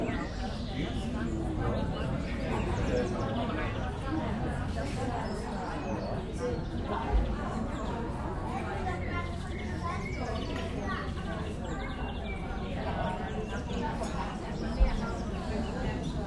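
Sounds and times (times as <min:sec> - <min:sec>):
street cafe ambience: 0:00.0 - 0:16.2.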